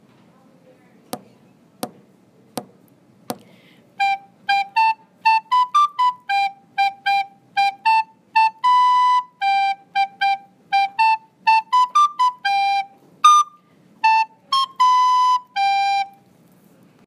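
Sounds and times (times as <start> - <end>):
nursery rhyme tune: 4.0 - 16.2.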